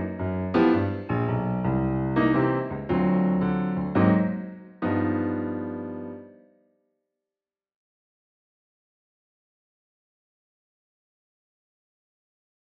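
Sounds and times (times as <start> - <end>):
piano: 0.0 - 6.6.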